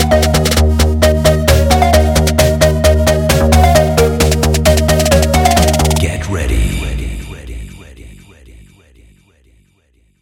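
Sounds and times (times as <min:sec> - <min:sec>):
organ track: 0:00.0 - 0:06.2.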